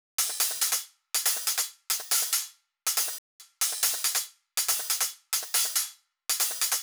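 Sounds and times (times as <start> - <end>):
drum loop with hi-hat at 140 BPM: 0.2 - 6.8.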